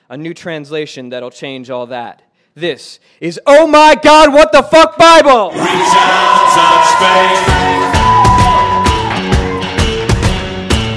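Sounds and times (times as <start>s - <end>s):
speech: 0.1s - 8.8s
shouts and yells: 5.1s - 9.8s
live audience cheering and whooping at the Stanton Street Shul: 5.5s - 10.1s.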